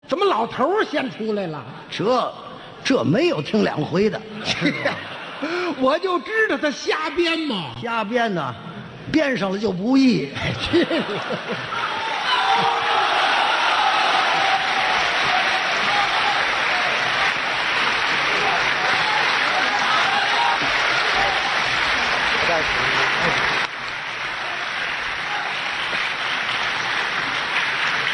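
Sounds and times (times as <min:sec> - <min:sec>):
speech: 0:00.3 - 0:11.9
scattered laughs: 0:10.4 - 0:11.8
audience applause: 0:10.9 - 0:28.1.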